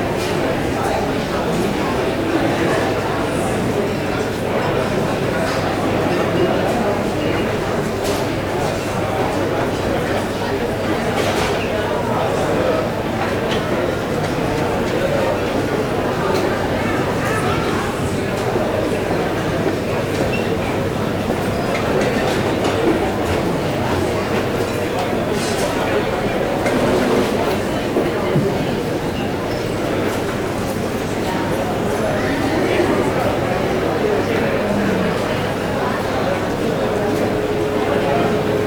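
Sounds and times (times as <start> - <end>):
indoor crowd murmur near a mall food court: 0.0 - 38.6.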